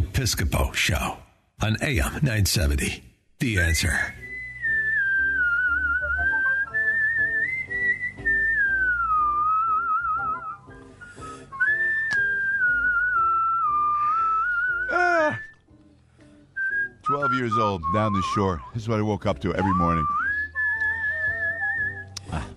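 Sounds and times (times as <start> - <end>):
speech: 0.2 - 4.2, 17.4 - 20.2
soft instrumental backing: 3.4 - 22.5
person whistling a melodic tune: 4.2 - 15.7, 16.6 - 18.8, 19.6 - 22.5.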